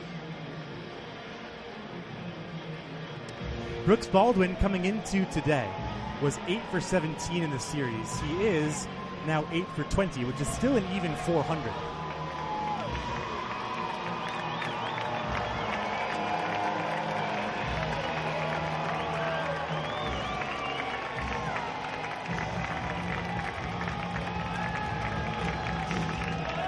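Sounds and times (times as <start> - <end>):
large stadium crowd cheering: 3.8 - 26.6
speech: 3.9 - 11.9
whistles: 14.0 - 21.6, 25.4 - 26.6.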